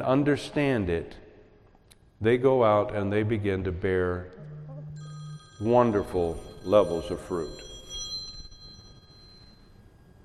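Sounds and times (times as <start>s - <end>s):
speech: 0.0s - 1.2s, 2.2s - 4.6s, 5.6s - 7.7s
cell phone ringing: 4.4s - 10.2s.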